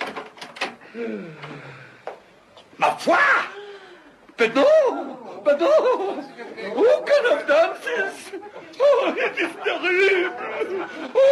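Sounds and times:
faint knocks and clatters: 0:00.0 - 0:00.8
speech: 0:01.0 - 0:01.9, 0:02.8 - 0:03.6, 0:04.4 - 0:11.2
laughter: 0:04.7 - 0:11.2.

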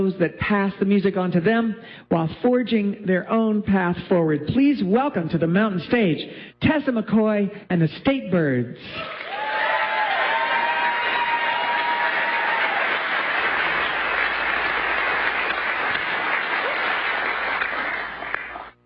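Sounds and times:
speech: 0:00.0 - 0:09.4
audience clapping loudly: 0:09.0 - 0:18.8.

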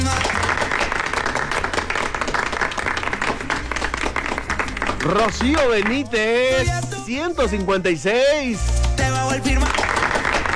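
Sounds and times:
crowd applause: 0:00.0 - 0:06.1, 0:09.5 - 0:10.5
speech: 0:05.0 - 0:10.0.

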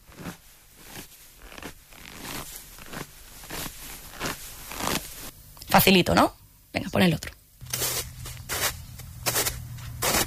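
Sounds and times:
real and foley footsteps in snow: 0:00.0 - 0:05.3, 0:07.6 - 0:10.2
speech: 0:05.7 - 0:07.4.

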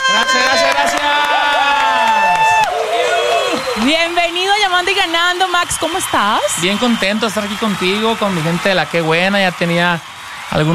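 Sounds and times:
audience applause: 0:00.0 - 0:10.7
speech: 0:04.8 - 0:10.7.

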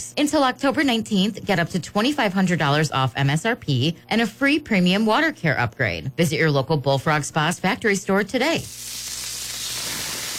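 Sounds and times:
speech: 0:00.0 - 0:09.0
smash burgers sizzling on a grill at JC's North: 0:08.6 - 0:10.3.

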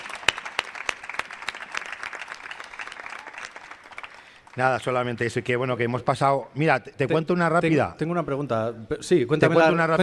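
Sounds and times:
audience applause: 0:00.0 - 0:05.0
speech: 0:04.6 - 0:10.0.

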